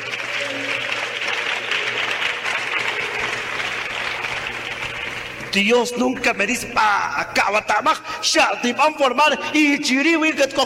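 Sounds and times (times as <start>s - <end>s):
audience applause: 0.0s - 5.5s
speech: 5.5s - 10.6s.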